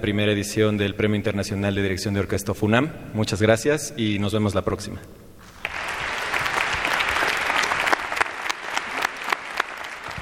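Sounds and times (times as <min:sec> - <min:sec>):
speech: 0:00.0 - 0:05.3
applause from concert audience of music lovers: 0:05.5 - 0:10.1.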